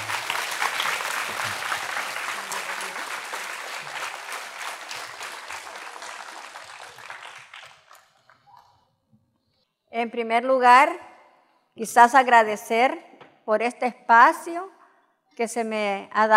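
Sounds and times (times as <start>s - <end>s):
audience applause: 0.0s - 8.6s
speech: 10.0s - 11.1s, 11.8s - 14.8s, 15.4s - 16.3s.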